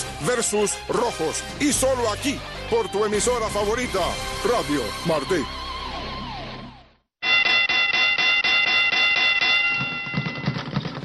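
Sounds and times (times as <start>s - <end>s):
speech: 0.2s - 5.6s
boxing bell ringing: 7.2s - 11.0s.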